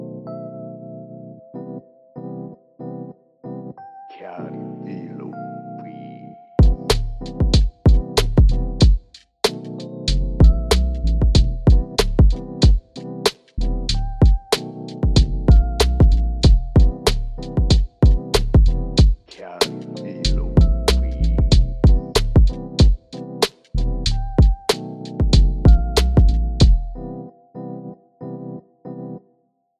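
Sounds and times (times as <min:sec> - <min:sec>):
rap beat in E minor: 0:06.6 - 0:26.9.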